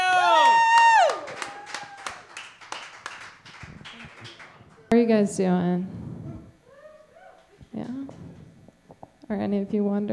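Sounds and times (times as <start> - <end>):
comedy show audience clapping and cheering welcoming a woman comedian: 0.0 - 4.9
speech: 5.0 - 6.0, 9.3 - 10.1.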